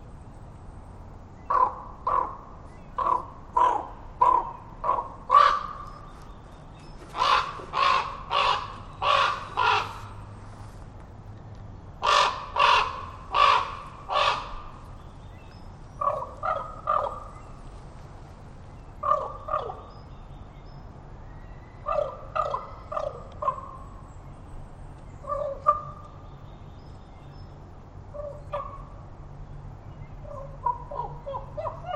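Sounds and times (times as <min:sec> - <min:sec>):
Common Raven croaks: 0:01.4 - 0:06.1, 0:07.0 - 0:10.4, 0:12.0 - 0:15.0, 0:15.9 - 0:17.6, 0:19.0 - 0:19.9, 0:21.8 - 0:23.9, 0:25.2 - 0:26.1, 0:30.2 - 0:31.9.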